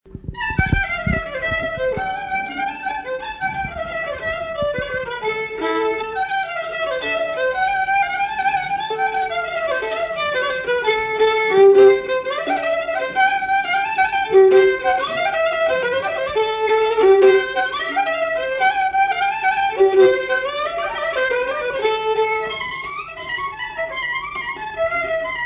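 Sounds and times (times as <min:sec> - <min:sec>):
violin game melody: 0:00.1 - 0:25.4.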